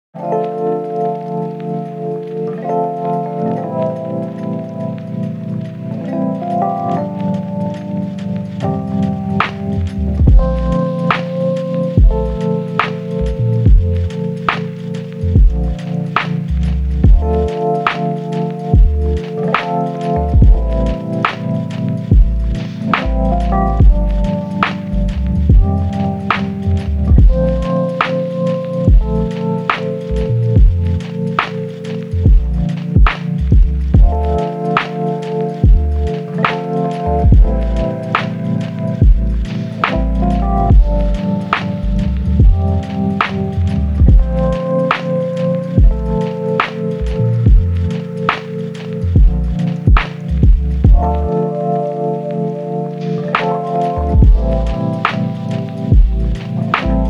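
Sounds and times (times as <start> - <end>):
lofi hip hop: 0.2 - 57.0.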